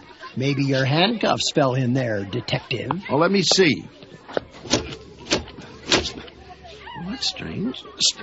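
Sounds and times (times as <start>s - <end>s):
speech: 0.4s - 4.1s, 7.2s - 8.2s
cash register drawer being pushed shut: 4.4s - 6.3s.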